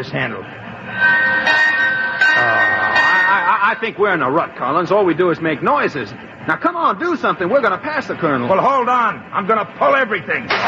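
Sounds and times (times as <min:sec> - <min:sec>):
speech: 0:00.0 - 0:01.6, 0:02.4 - 0:02.7, 0:03.7 - 0:10.6
train whistle being pulled: 0:00.9 - 0:03.6.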